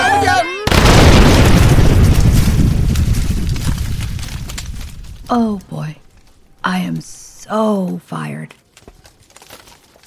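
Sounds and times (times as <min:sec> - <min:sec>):
glowing red-hot book exploding: 0:00.7 - 0:05.4
speech: 0:05.3 - 0:06.0, 0:06.8 - 0:08.6.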